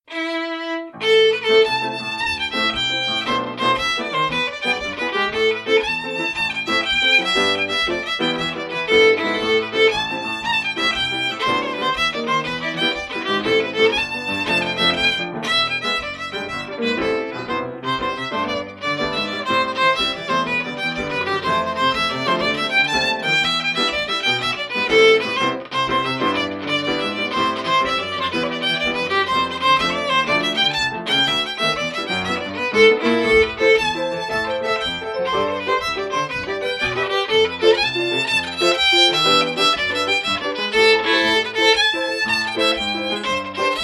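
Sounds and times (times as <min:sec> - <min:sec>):
fiddle playing a jig: 0:00.0 - 0:43.8.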